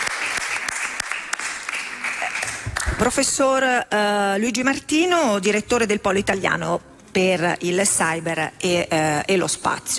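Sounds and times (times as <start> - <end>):
audience applause: 0.0 - 2.9
speech: 3.0 - 9.9.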